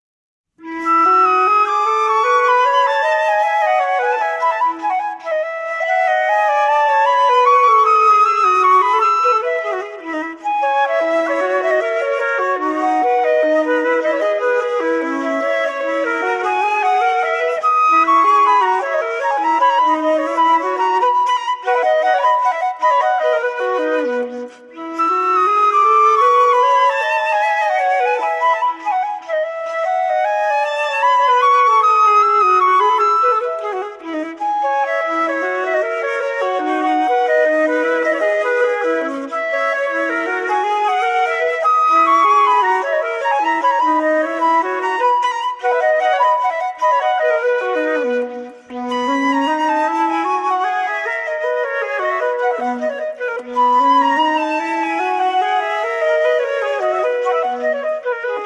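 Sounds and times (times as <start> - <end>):
two-part invention on two flutes: 0.6 - 58.4.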